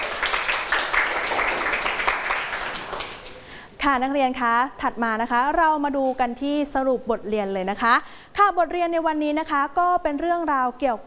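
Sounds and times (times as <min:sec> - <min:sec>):
group of students clapping: 0:00.0 - 0:03.7
speech: 0:03.9 - 0:11.0.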